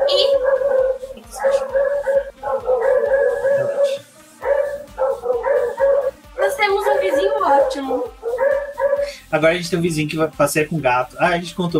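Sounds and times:
dogs barking and yelping at the gate: 0:00.0 - 0:09.2
speech: 0:09.4 - 0:11.7.

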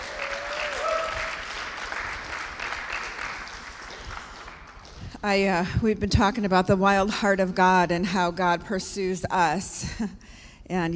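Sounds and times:
audience hand clapping applause: 0:00.0 - 0:05.2
speech: 0:05.2 - 0:10.9.

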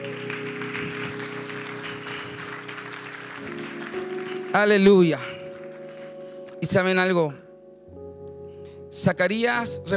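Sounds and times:
audience applause: 0:00.0 - 0:06.1
speech: 0:04.5 - 0:05.3, 0:06.6 - 0:07.4, 0:08.9 - 0:09.9.

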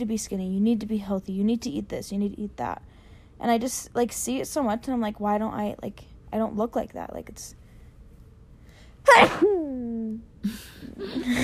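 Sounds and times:
speech: 0:00.0 - 0:07.6, 0:09.0 - 0:11.4
person sneezing: 0:09.0 - 0:09.7.

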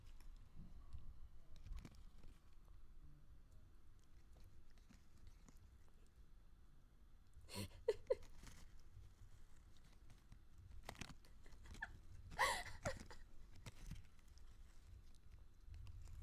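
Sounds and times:
cat chewing on plastic jerky wrapper: 0:01.4 - 0:02.6, 0:03.9 - 0:06.2, 0:07.8 - 0:16.2.

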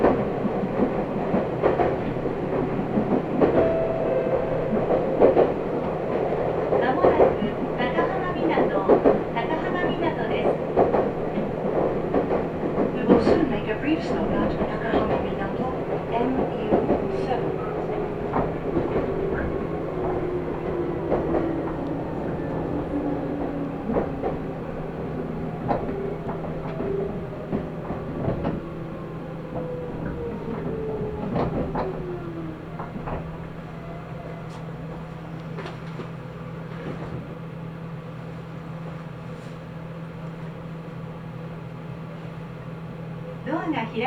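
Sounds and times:
Nagoya Railroad Mikawa Line train rumble and hum: 0:00.0 - 0:44.0
descending whine as the train slows: 0:16.5 - 0:35.8.

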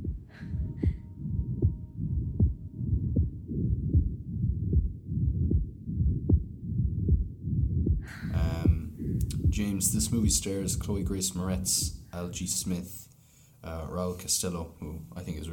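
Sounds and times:
heartbeat: 0:00.0 - 0:12.1
speech: 0:09.6 - 0:13.0, 0:13.6 - 0:15.5.

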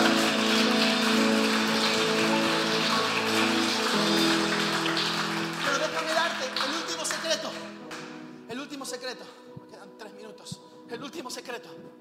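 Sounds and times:
crowd applauding loudly: 0:00.0 - 0:08.2
sustained musical tones: 0:00.0 - 0:08.5.

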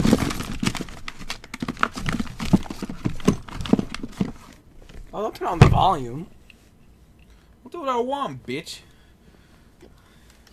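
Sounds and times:
rummaging through a junk drawer: 0:00.0 - 0:06.0
speech: 0:05.2 - 0:06.4, 0:07.7 - 0:08.9.

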